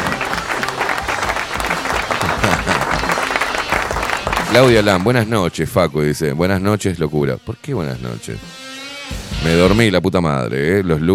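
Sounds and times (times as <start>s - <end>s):
laughter: 0.0s - 4.9s
crowd clapping: 0.0s - 5.3s
speech: 4.5s - 11.1s.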